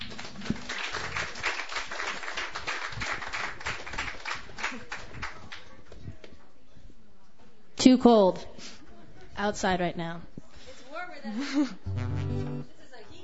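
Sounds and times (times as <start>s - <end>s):
audience applauding at a Sunday night open mic: 0.0s - 5.2s
speech: 7.8s - 8.6s, 9.4s - 10.3s, 11.2s - 12.0s.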